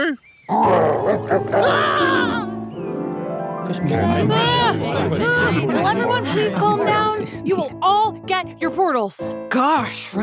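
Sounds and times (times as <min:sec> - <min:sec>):
speech: 0:00.0 - 0:01.5, 0:03.7 - 0:10.2
three-headed dog growling and roaring: 0:00.5 - 0:02.4
laughter: 0:03.7 - 0:07.7.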